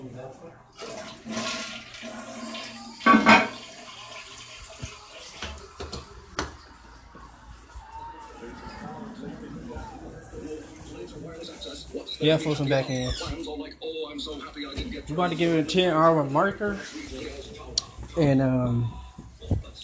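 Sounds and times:
speech: 0:00.2 - 0:01.4, 0:12.2 - 0:13.5, 0:15.1 - 0:17.0, 0:18.2 - 0:19.0
toilet flushing and refilling with water: 0:00.8 - 0:06.1.

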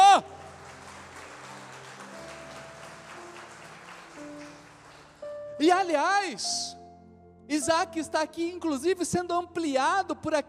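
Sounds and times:
congregation applauding loudly: 0:00.0 - 0:05.3
speech: 0:05.6 - 0:06.8, 0:07.5 - 0:10.4.

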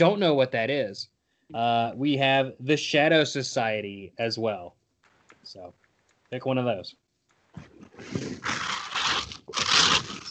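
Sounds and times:
speech: 0:00.0 - 0:04.8, 0:05.4 - 0:07.0, 0:07.6 - 0:08.8
bag of chips crinkling: 0:07.8 - 0:10.2.

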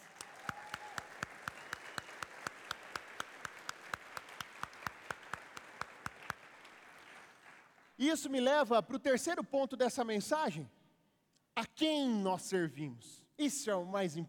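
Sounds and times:
audience applauding: 0:00.0 - 0:08.0
speech: 0:08.0 - 0:10.8, 0:11.8 - 0:14.2.

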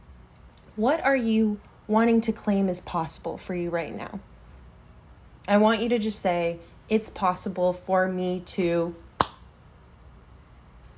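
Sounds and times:
speech: 0:00.8 - 0:04.3, 0:05.5 - 0:09.0
single sharp hand clap: 0:09.2 - 0:09.4.

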